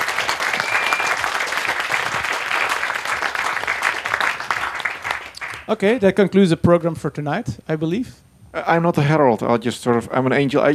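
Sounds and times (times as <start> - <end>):
audience applause: 0.0 - 5.8
speech: 5.7 - 10.7.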